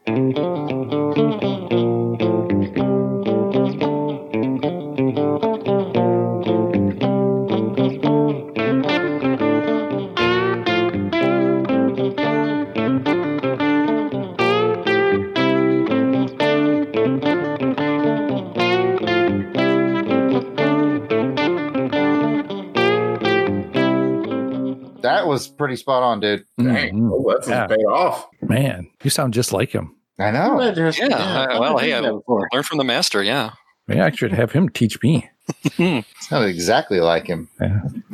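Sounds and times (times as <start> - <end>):
electric guitar played through effects: 0.0 - 25.2
speech: 25.8 - 38.1
laughter: 30.6 - 32.6, 35.4 - 36.4.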